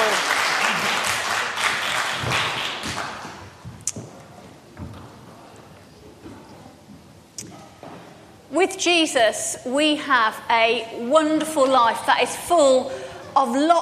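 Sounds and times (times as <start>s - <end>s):
crowd applause: 0.0s - 3.6s
speech: 8.8s - 13.7s.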